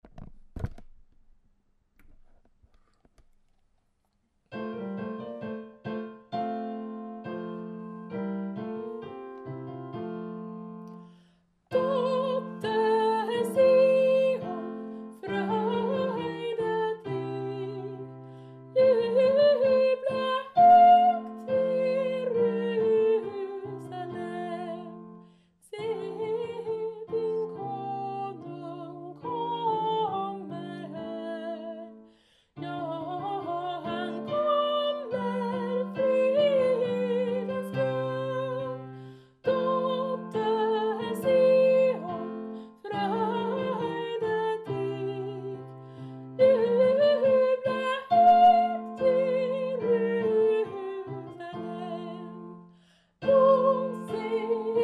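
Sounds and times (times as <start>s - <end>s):
soprano voice: 11.7s - 52.6s, 53.2s - 54.8s.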